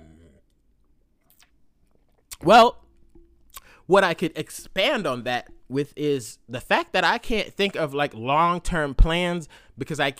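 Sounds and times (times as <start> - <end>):
sipping a drink: 1.2 - 3.8
speech: 2.4 - 2.8, 3.9 - 10.1.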